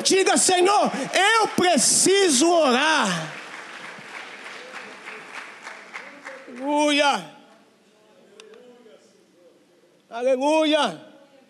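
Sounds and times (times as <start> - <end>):
audience applauding: 0.0 - 7.0
speech: 0.1 - 3.4, 6.6 - 7.4, 10.1 - 11.1.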